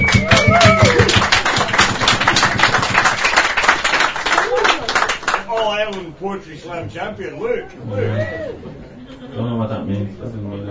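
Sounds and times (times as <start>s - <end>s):
audience double clap: 0.0s - 6.1s
speech: 6.4s - 10.6s.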